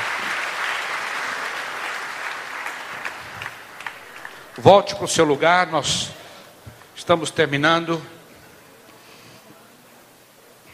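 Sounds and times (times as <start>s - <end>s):
audience applause: 0.0s - 5.4s
speech: 4.6s - 6.2s, 7.0s - 8.2s.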